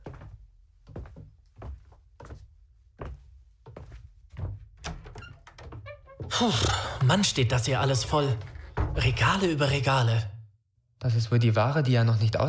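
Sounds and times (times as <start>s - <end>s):
heavy footsteps on a hard floor: 0.0s - 9.9s
door opening into back room: 4.4s - 10.2s
speech: 6.4s - 10.3s, 11.0s - 12.4s.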